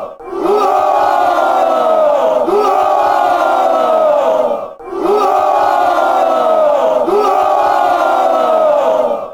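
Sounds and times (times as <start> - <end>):
fans chanting: 0.0 - 9.3.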